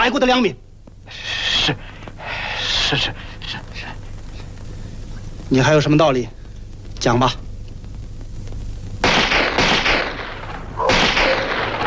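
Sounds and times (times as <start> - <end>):
speech: 0.0 - 1.9, 2.9 - 3.6, 5.5 - 6.4, 7.0 - 7.4
gunfire: 9.0 - 11.8.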